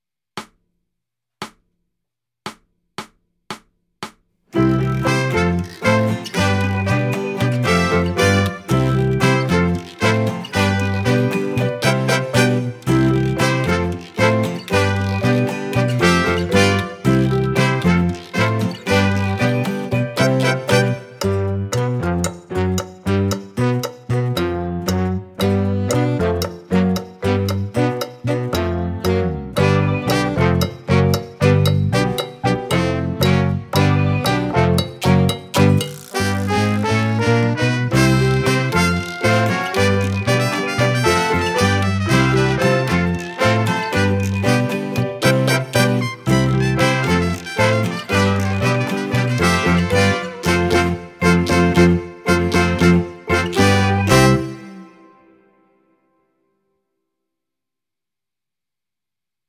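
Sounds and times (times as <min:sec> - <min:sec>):
Caribbean backing track music: 0:04.6 - 0:55.4.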